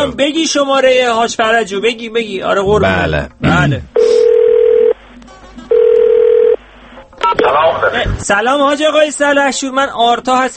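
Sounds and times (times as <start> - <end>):
speech: 0.0 - 4.2, 7.3 - 10.5
telephone ringback tone on a call to a radio guest: 4.0 - 5.0, 5.7 - 6.6.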